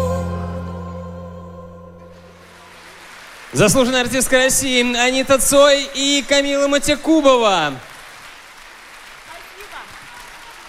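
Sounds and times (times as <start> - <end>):
audience applause: 2.2 - 10.6
speech: 3.5 - 7.9.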